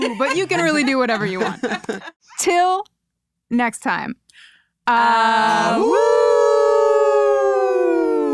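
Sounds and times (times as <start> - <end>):
laughter: 0.0 - 2.2
speech: 0.0 - 6.2
several people howling like wolves: 5.3 - 8.3.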